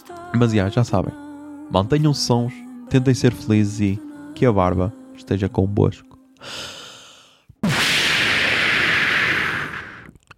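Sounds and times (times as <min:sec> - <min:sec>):
speech: 0:00.1 - 0:06.7
smoke bomb whoosh effect: 0:07.6 - 0:10.1
sharp pop: 0:07.6 - 0:10.2.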